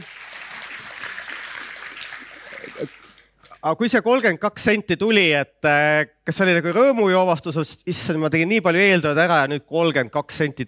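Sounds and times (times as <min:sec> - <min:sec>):
small group clapping: 0:00.0 - 0:03.6
speech: 0:03.6 - 0:10.6.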